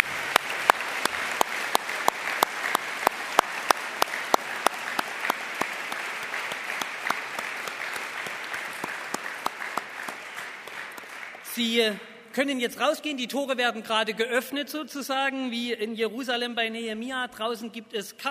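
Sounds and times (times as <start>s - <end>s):
audience applause: 0.0s - 11.6s
speech: 11.6s - 18.2s.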